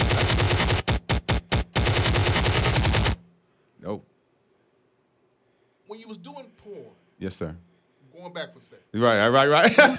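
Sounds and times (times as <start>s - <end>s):
machine gun fire: 0.0s - 3.2s
speech: 3.9s - 4.1s, 5.9s - 9.9s.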